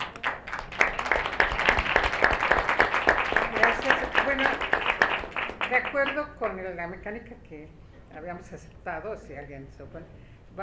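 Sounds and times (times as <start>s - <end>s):
audience applause: 0.0s - 6.2s
speech: 5.7s - 10.6s.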